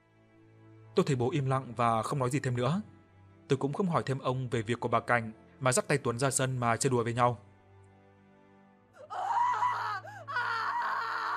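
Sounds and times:
speech: 0:01.0 - 0:02.9, 0:03.5 - 0:07.5
woman's loud scream: 0:09.0 - 0:11.3.

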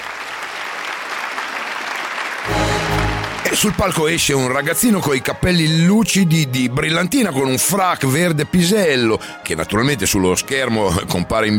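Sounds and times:
studio audience applauding: 0:00.0 - 0:04.8
speech: 0:03.5 - 0:11.5.

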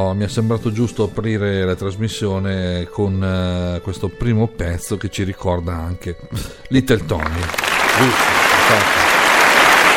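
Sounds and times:
speech: 0:00.0 - 0:09.0
audience applause on an Italian radio show: 0:07.2 - 0:09.9.

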